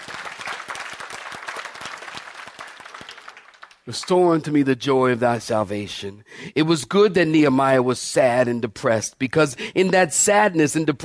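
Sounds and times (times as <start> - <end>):
audience clapping hands: 0.0 - 4.2
speech: 3.9 - 11.0.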